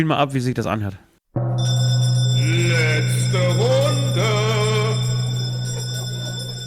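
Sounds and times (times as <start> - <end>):
speech: 0.0 - 1.0
heavy bells struck with an iron hammer: 1.4 - 6.6.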